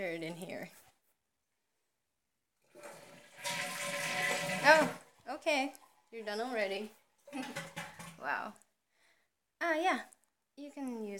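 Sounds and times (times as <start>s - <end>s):
speech: 0.2s - 0.8s, 5.4s - 8.6s, 9.6s - 11.1s
toilet flushing: 2.6s - 8.4s.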